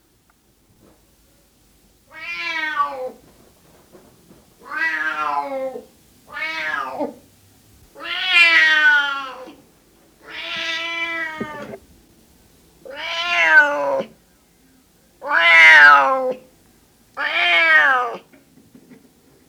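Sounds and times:
male cat meowing: 2.1s - 3.2s, 4.6s - 7.2s, 8.0s - 9.6s, 10.2s - 11.8s, 12.8s - 14.2s, 15.2s - 16.4s, 17.2s - 18.3s.

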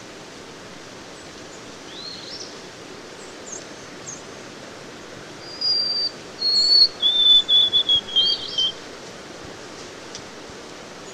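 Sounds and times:
White-throated sparrow song of pure whistles: 1.9s - 2.5s, 5.4s - 8.8s.

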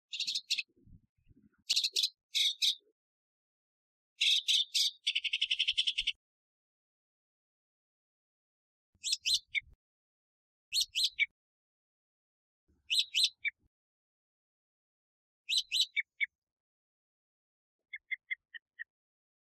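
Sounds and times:
northern mockingbird Mimus polyglottos song: 0.0s - 2.9s, 4.2s - 6.2s, 9.0s - 9.8s, 10.7s - 11.4s, 12.8s - 13.7s, 15.5s - 16.4s, 17.9s - 19.0s.

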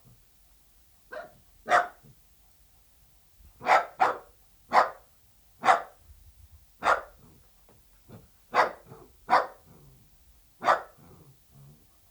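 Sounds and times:
dachshund barking: 1.1s - 2.0s, 3.6s - 5.0s, 5.6s - 6.0s, 6.8s - 7.2s, 8.5s - 9.6s, 10.6s - 11.0s.

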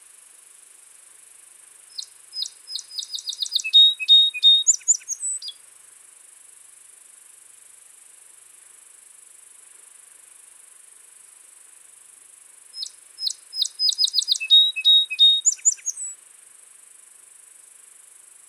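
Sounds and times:
Song sparrow Melospiza melodia singing: 2.0s - 5.6s, 12.8s - 16.1s.

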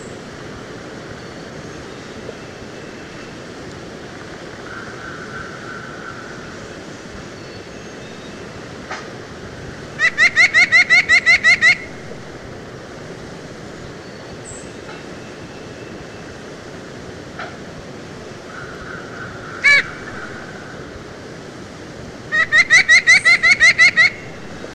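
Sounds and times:
White-breasted nuthatch nasal harmonic call notes: 9.9s - 12.2s, 18.5s - 20.5s, 22.3s - 24.7s.

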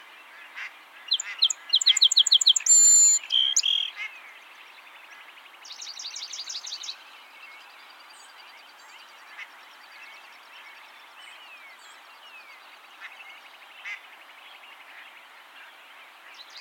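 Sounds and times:
song sparrow Melospiza melodia singing: 1.1s - 3.9s.

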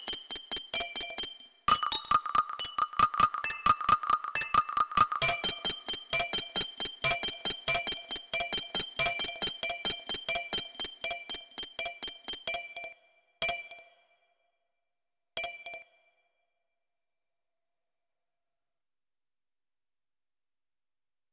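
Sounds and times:
synthesized percussion: 0.0s - 13.8s.

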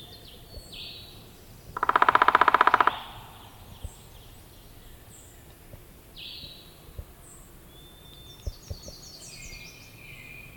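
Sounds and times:
Downy Woodpecker Picoides pubescens whinny: 1.7s - 4.2s.

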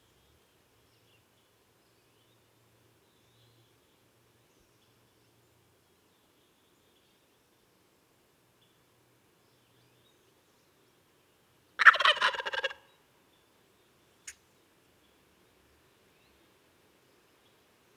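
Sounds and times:
Wild turkey gobble: 11.8s - 12.9s.

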